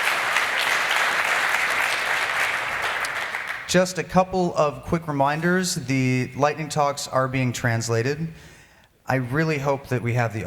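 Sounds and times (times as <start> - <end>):
conference audience applause after lightning talks: 0.0 - 3.8
speech: 3.7 - 8.5, 9.1 - 10.4.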